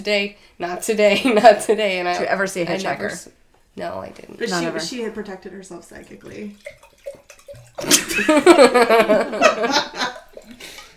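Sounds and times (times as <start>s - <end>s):
speech: 0.0s - 10.8s
creek water flowing outside the house: 5.7s - 8.2s, 9.9s - 10.9s
laughter: 7.8s - 10.3s.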